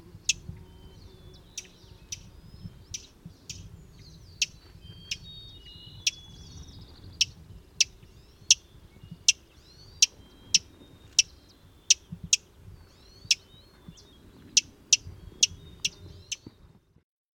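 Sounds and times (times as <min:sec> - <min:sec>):
fox sparrow giving sharp high clipped call notes: 0:00.0 - 0:16.7.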